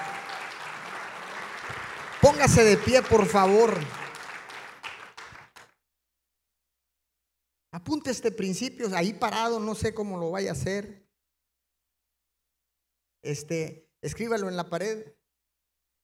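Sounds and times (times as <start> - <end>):
audience applauding: 0.0 - 5.7
speech: 2.2 - 4.0, 8.1 - 11.0, 13.2 - 15.2.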